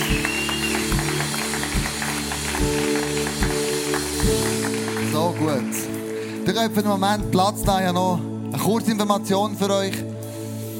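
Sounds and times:
audience applause: 0:00.0 - 0:06.4
speech: 0:05.4 - 0:10.1.

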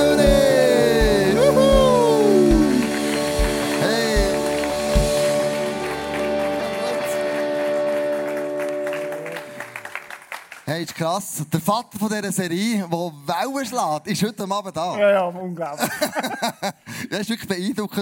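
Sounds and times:
audience applause: 0:00.0 - 0:10.8
speech: 0:11.0 - 0:18.0
laughter: 0:15.8 - 0:16.9.

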